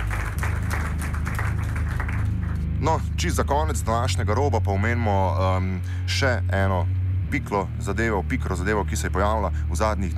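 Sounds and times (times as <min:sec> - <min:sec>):
applause: 0:00.0 - 0:02.8
speech: 0:02.8 - 0:10.1.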